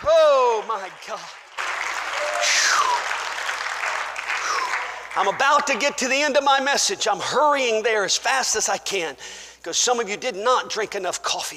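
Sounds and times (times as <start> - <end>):
audience clapping hands: 0.0 - 6.4
speech: 0.9 - 1.5, 5.2 - 11.5.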